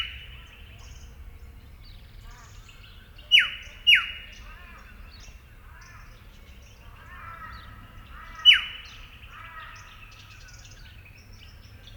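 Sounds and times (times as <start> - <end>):
Eastern yellow robin Eopsaltria australis calling: 3.2 - 6.0, 6.9 - 10.7.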